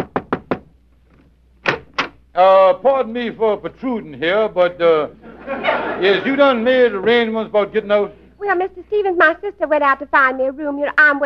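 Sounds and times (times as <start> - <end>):
knocking on a door: 0.0 - 0.7
speech: 2.4 - 11.2
laughter: 4.6 - 8.1.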